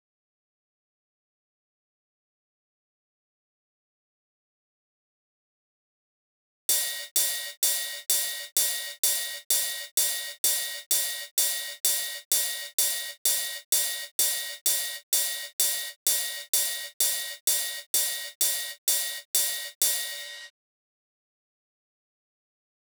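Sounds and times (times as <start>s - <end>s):
ride cymbal at 128 BPM: 6.7s - 20.5s.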